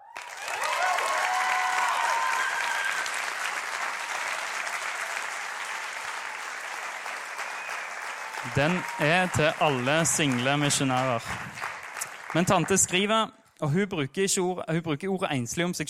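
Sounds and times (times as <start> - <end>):
whoops and cheers: 0.0 - 6.5, 7.2 - 10.2
audience applause: 0.0 - 13.1
speech: 8.4 - 11.6, 12.3 - 15.8.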